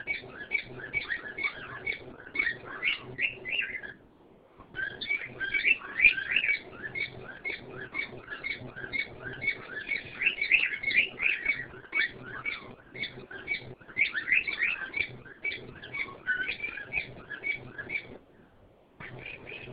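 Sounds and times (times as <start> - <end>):
bird twittering in rising and falling whistled notes: 0.0 - 4.0, 4.8 - 18.2, 19.0 - 19.7.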